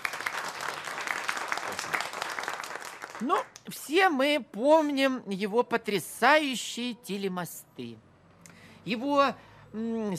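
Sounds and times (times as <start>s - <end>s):
small audience applause greeting a guest author: 0.0s - 3.4s
speech: 3.2s - 8.1s, 8.8s - 10.1s.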